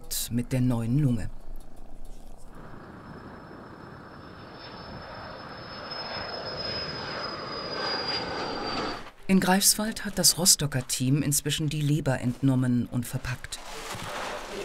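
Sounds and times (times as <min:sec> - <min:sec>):
speech: 0:00.3 - 0:01.4, 0:09.3 - 0:14.1
charter airplane in flight to Munich: 0:01.4 - 0:09.2.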